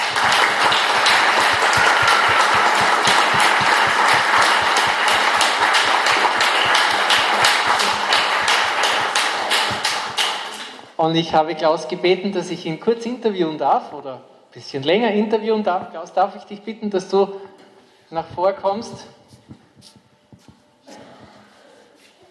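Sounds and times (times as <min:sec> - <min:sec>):
audience applause: 0:00.0 - 0:10.9
speech: 0:11.0 - 0:17.5, 0:18.1 - 0:20.0.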